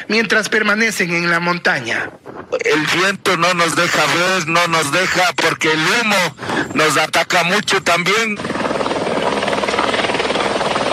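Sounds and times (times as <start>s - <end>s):
speech: 0.1s - 8.6s
police water tanker helicopter flying over a wildfire on Cotacachi: 3.4s - 10.9s.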